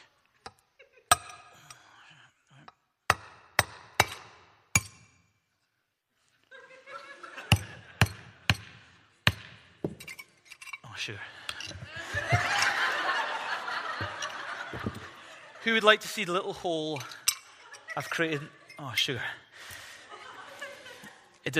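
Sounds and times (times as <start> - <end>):
hammer striking a nail into glass: 3.1 - 5.2, 7.5 - 10.2
people laughing: 6.4 - 8.4, 11.0 - 21.5
speech: 11.1 - 11.8, 15.6 - 17.2, 18.0 - 19.4.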